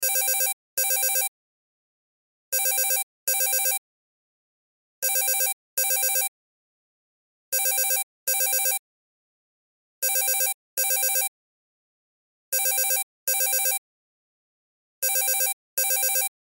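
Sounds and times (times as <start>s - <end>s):
cell phone ringtone: 0.0s - 1.3s, 2.6s - 3.8s, 5.0s - 6.3s, 7.6s - 8.8s, 10.0s - 11.3s, 12.6s - 13.8s, 15.0s - 16.3s.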